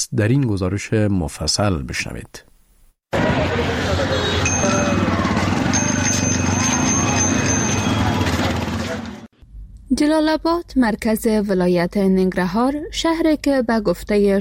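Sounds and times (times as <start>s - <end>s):
speech: 0.0s - 2.5s, 9.9s - 14.3s
steady roar of city traffic with engines: 3.1s - 9.4s
murmur of voices: 3.2s - 9.2s
bicycle bells ringing: 4.3s - 9.0s.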